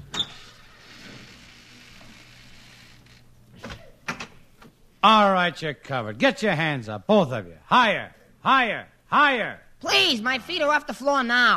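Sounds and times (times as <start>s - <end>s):
front door being opened: 0.0s - 4.8s
speech: 5.0s - 11.5s.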